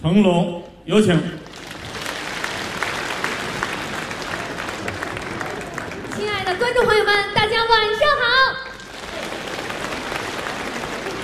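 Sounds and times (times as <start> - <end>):
speech: 0.0 - 1.5, 6.8 - 8.7
audience applause welcoming a female crosstalk comedian: 1.4 - 7.1, 8.7 - 11.2.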